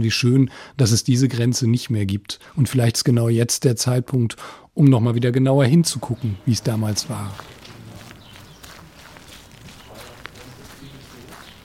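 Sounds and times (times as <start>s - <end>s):
speech: 0.0s - 7.5s
low outdoor noise: 0.0s - 11.6s
footsteps of people walking along the Scharflower Straße village street: 6.0s - 11.6s.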